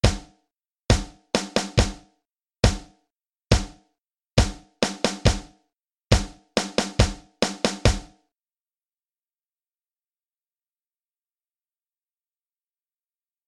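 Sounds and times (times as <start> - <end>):
power rock drum set: 0.9 - 2.0, 2.6 - 2.9, 4.4 - 5.5, 6.1 - 8.1.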